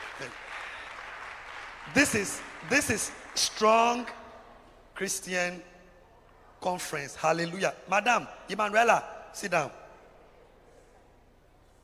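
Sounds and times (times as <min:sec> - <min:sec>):
audience clapping for a choir: 0:00.0 - 0:04.2
speech: 0:00.2 - 0:00.4, 0:01.8 - 0:04.2, 0:05.0 - 0:05.7, 0:06.6 - 0:09.8.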